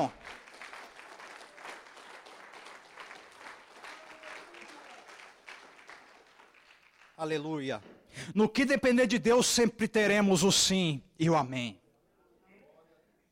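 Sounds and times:
audience applauding: 0:00.0 - 0:07.6
speech: 0:07.2 - 0:11.8.

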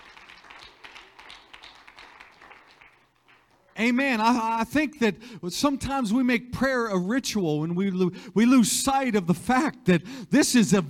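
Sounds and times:
crowd clapping: 0:00.0 - 0:03.9
speech: 0:03.8 - 0:10.8.

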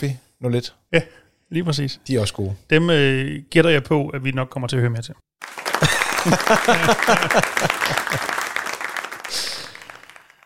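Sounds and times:
speech: 0:00.0 - 0:05.6, 0:06.2 - 0:08.4
round of applause: 0:05.4 - 0:10.4
laughter: 0:05.6 - 0:10.2.

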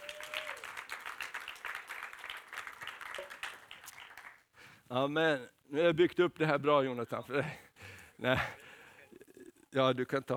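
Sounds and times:
audience applause: 0:00.0 - 0:04.5
speech: 0:04.9 - 0:08.6, 0:09.7 - 0:10.3.

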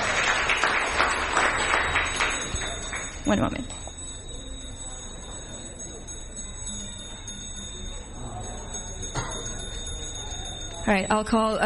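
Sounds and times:
gathering applauding in a temple room: 0:00.0 - 0:03.8
speech: 0:03.3 - 0:03.8, 0:10.9 - 0:11.6.

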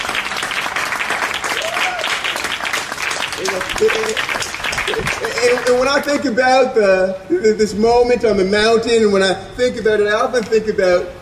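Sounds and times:
audience applause: 0:00.0 - 0:06.2
speech: 0:03.8 - 0:11.2.

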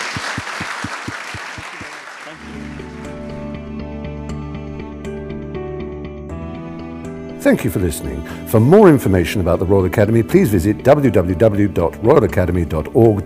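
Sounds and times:
round of applause for Anthony: 0:00.0 - 0:03.4
speech: 0:07.4 - 0:13.2.

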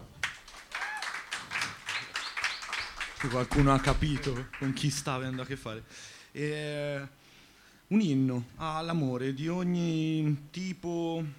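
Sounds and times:
audience applause: 0:00.0 - 0:05.7
speech: 0:03.2 - 0:07.2, 0:07.9 - 0:11.3.

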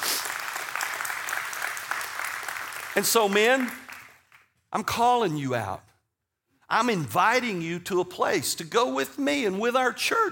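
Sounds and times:
golf clap, soft polite clapping: 0:00.0 - 0:04.6
speech: 0:03.0 - 0:03.8, 0:04.7 - 0:05.9, 0:06.7 - 0:10.3.

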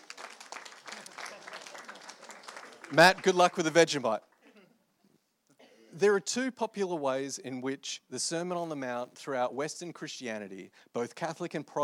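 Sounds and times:
audience round of applause: 0:00.0 - 0:03.8
speech: 0:02.9 - 0:04.3, 0:06.0 - 0:11.8.

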